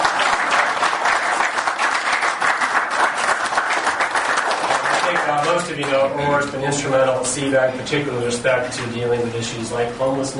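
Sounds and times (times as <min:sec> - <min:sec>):
audience applause: 0:00.0 - 0:06.0
speech: 0:05.7 - 0:10.3.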